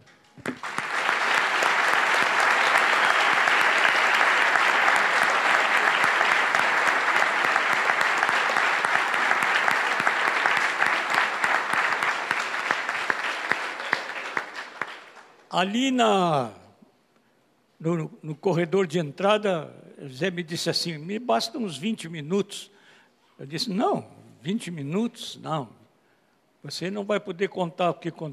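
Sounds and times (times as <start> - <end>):
audience applause: 0.4 - 15.3
speech: 15.6 - 16.6, 17.8 - 22.8, 23.4 - 25.8, 26.6 - 28.3.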